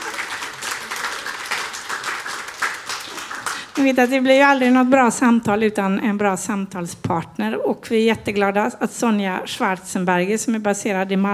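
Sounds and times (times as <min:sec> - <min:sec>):
audience applause: 0:00.0 - 0:04.0
speech: 0:03.8 - 0:11.3.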